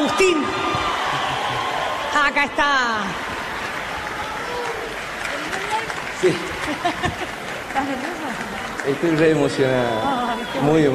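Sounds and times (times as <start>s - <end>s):
audience applause: 0.0s - 10.9s
laughter: 0.7s - 1.9s, 6.2s - 8.4s
speech: 2.3s - 3.3s, 6.2s - 10.9s.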